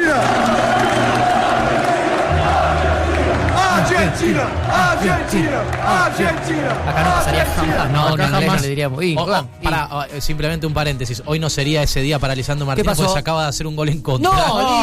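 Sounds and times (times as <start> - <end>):
stadium crowd chanting: 0.0 - 8.6
speech: 4.2 - 14.8.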